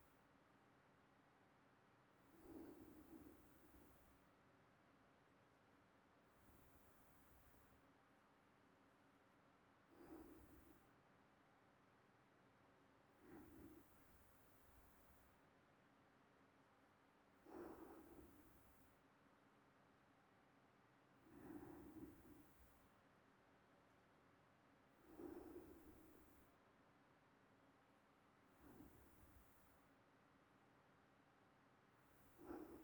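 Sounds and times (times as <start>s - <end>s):
sleeping breathing: 2.2s - 4.1s, 9.9s - 10.9s, 13.2s - 15.2s, 17.4s - 18.8s, 21.2s - 22.8s, 25.0s - 26.5s, 28.5s - 29.8s, 32.1s - 32.8s.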